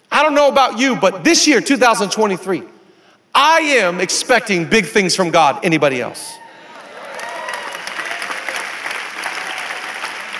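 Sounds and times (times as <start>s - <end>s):
speech: 0.2s - 2.8s, 3.4s - 6.4s
audience clapping: 6.8s - 10.3s.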